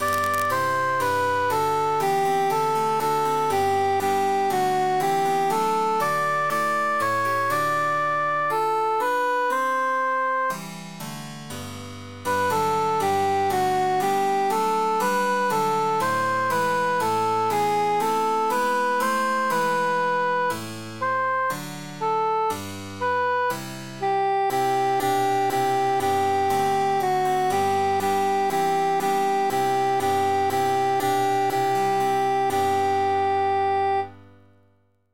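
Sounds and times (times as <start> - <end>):
emphasized cantus melody: 0.0 - 10.5, 12.3 - 34.1.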